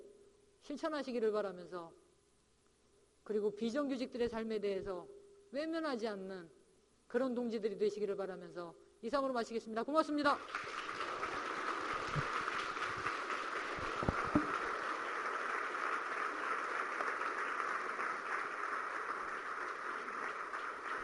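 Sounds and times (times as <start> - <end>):
speech: 0.7 - 2.0, 3.3 - 10.8, 12.2 - 12.4
crowd applause: 10.4 - 21.0.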